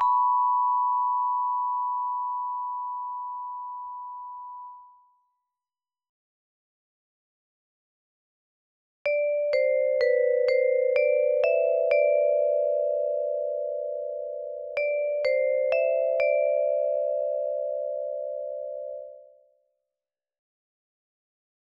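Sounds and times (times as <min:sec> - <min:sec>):
vibraphone: 0:00.0 - 0:04.9, 0:09.1 - 0:19.3.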